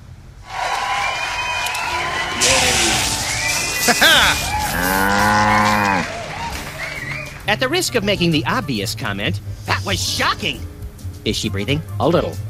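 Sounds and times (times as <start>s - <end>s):
steady hiss and murmur: 0.0s - 12.4s
speech: 3.9s - 5.6s, 7.5s - 12.4s
cow mooing: 4.3s - 6.2s.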